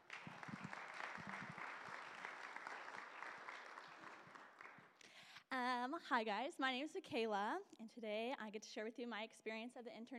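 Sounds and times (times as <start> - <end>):
audience applause: 0.0 - 5.0
speech: 5.8 - 10.1.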